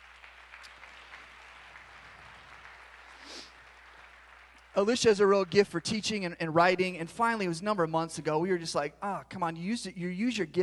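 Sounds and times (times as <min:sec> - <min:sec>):
audience applause: 0:00.0 - 0:05.4
speech: 0:04.8 - 0:10.6.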